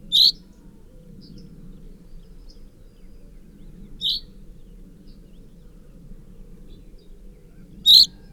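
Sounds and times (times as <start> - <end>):
common chaffinch chirping and trilling: 0.1 - 0.4, 7.9 - 8.2.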